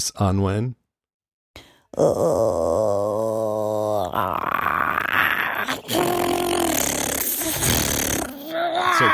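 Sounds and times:
person imitating an infected zombie with moans, growls and snarls: 0:01.9 - 0:09.1.

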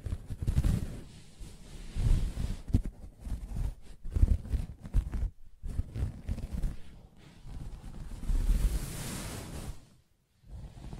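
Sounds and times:
soft fabric tapped and scratched: 0:00.0 - 0:01.0, 0:02.1 - 0:08.7.

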